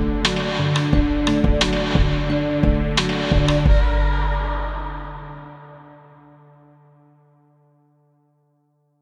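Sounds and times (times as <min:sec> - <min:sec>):
88 bpm music track: 0:00.0 - 0:06.6.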